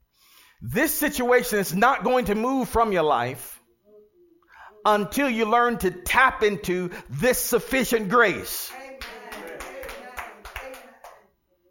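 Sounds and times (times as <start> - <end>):
speech: 0.6 - 3.5, 4.8 - 8.7
clapping: 9.0 - 11.2.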